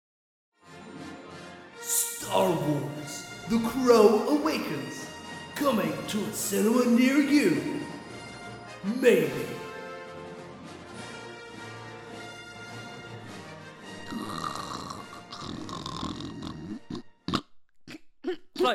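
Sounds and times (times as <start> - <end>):
speech: 2.3 - 7.9, 8.8 - 9.5
person snoring: 14.0 - 17.4.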